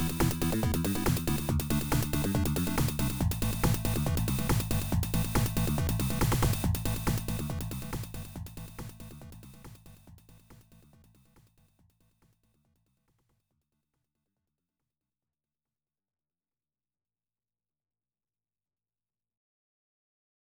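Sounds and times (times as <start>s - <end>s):
tense up-tempo competition music: 0.0s - 11.0s.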